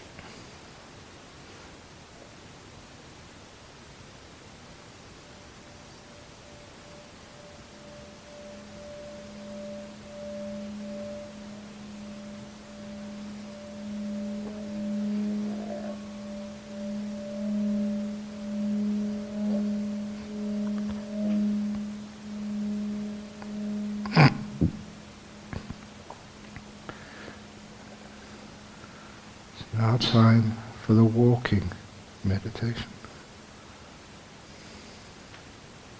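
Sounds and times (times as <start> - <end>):
meditation gong being rung: 5.5 - 29.2
speech: 30.1 - 31.8, 32.4 - 33.0.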